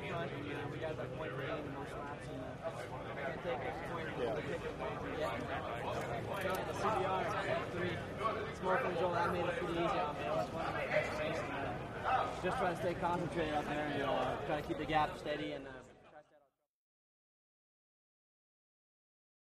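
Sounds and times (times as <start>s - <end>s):
motorcycle road racing finish ambience: 0.0s - 15.5s.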